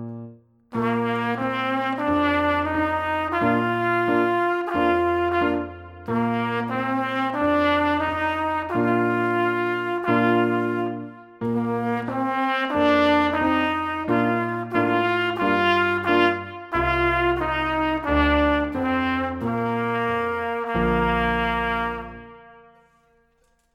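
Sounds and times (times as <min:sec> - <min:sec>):
trumpet melody: 0:00.7 - 0:23.6.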